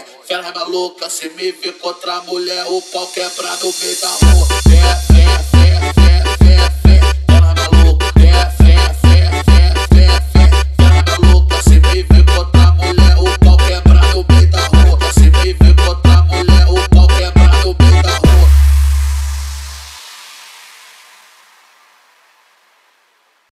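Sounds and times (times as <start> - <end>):
funk music: 2.3 - 20.0.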